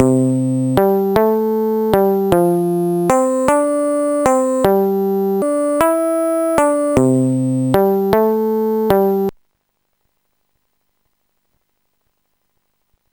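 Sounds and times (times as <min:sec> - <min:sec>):
midi bass: 0:00.0 - 0:09.3.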